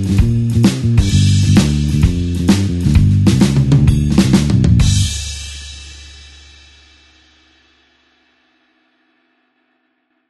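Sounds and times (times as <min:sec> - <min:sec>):
blues shuffle backing track in G: 0:00.0 - 0:07.2.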